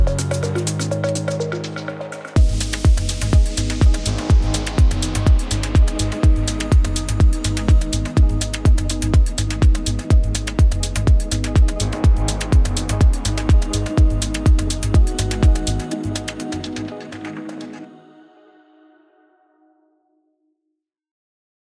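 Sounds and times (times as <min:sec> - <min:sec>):
eighties synthwave music: 0:00.0 - 0:18.6.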